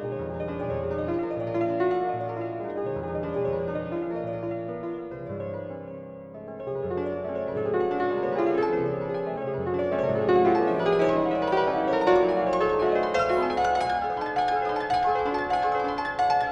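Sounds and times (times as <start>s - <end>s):
piano piece in F sharp minor: 0.0s - 16.5s.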